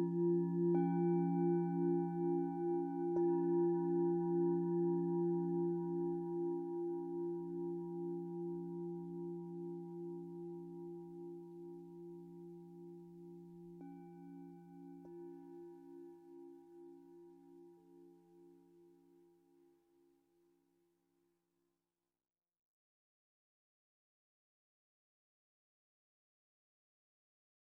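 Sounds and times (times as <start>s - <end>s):
singing bowls improvisation: 0.0s - 18.9s.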